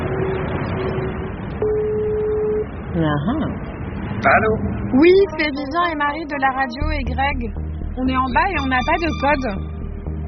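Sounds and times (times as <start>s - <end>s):
telephone tone as a call is placed: 0.1s - 2.7s
speech: 3.0s - 9.8s.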